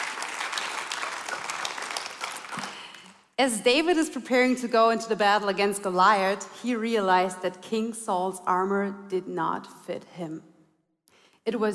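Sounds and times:
audience applause: 0:00.0 - 0:03.1
speech: 0:03.4 - 0:10.5, 0:11.4 - 0:11.7.

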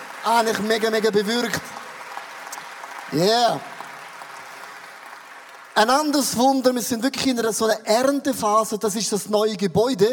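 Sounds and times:
audience applause: 0:00.0 - 0:07.5
speech: 0:00.2 - 0:01.8, 0:03.1 - 0:03.7, 0:05.8 - 0:10.1.

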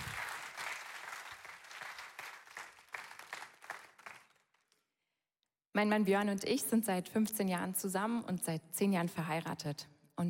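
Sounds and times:
crowd applauding: 0:00.0 - 0:04.8
speech: 0:05.8 - 0:10.2.

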